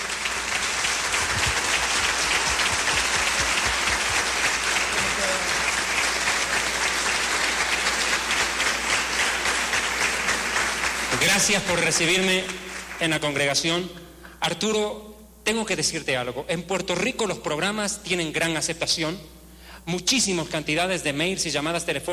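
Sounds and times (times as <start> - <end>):
audience applause: 0.0 - 13.2
speech: 11.5 - 22.1.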